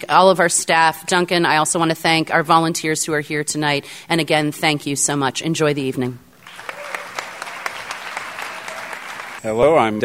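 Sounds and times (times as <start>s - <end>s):
speech: 0.0s - 6.3s, 9.4s - 10.0s
audience applause: 6.4s - 9.4s.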